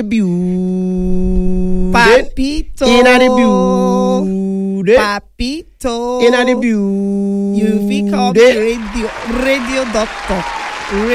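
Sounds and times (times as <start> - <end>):
speech: 0.0 - 0.7, 2.0 - 11.1
applause for a guest: 8.6 - 11.1.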